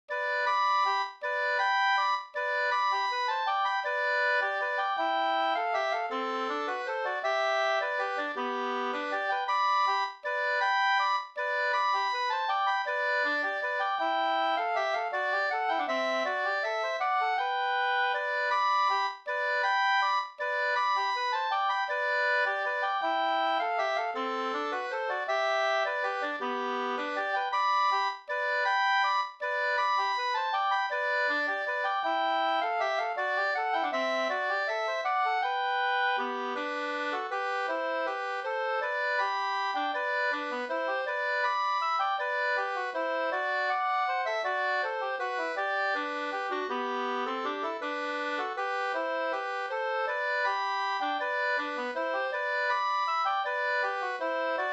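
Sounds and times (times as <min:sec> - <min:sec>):
waltz in G major: 0:00.1 - 0:54.7.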